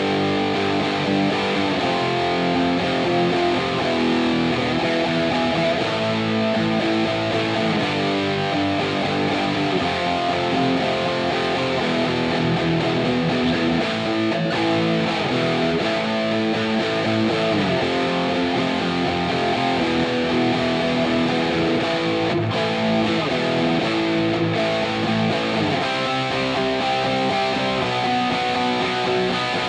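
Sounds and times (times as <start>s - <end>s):
heavy guitar: 0.0s - 29.6s.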